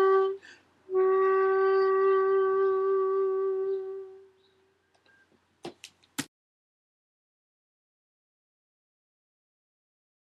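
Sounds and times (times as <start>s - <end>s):
shakuhachi: 1.0s - 4.4s.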